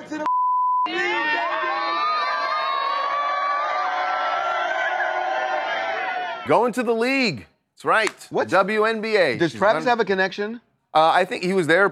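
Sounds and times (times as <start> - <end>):
short steady beep: 0.2 - 0.9
campus crowd cheering and shouting during a visit: 0.9 - 6.8
speech: 6.5 - 11.8.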